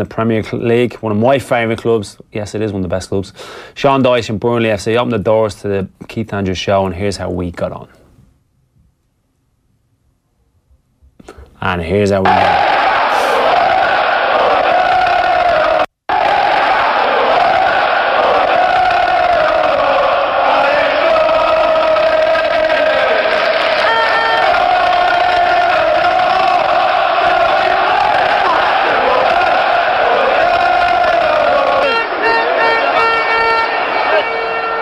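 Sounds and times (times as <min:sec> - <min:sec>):
speech: 0:00.0 - 0:08.0, 0:11.2 - 0:12.7
football crowd cheering at a stadium: 0:12.2 - 0:34.8.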